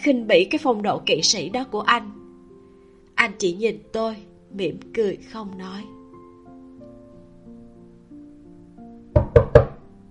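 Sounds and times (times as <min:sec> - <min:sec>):
speech: 0:00.0 - 0:02.2, 0:03.2 - 0:06.0
knocking on a door: 0:09.2 - 0:09.8.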